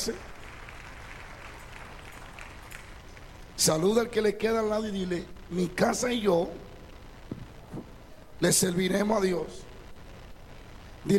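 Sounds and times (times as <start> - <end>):
speech: 0.0 - 0.3, 3.6 - 6.7, 7.7 - 9.7
audience applause: 0.0 - 3.5.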